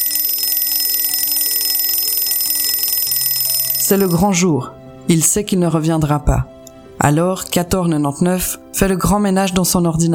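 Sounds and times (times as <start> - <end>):
alarm clock ringing: 0.0 - 4.4
speech: 3.9 - 10.1.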